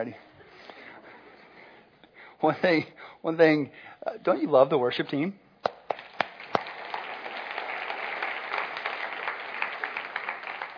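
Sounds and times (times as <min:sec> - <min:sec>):
speech: 0:00.0 - 0:00.3, 0:02.4 - 0:05.4
audience clapping: 0:05.6 - 0:10.7.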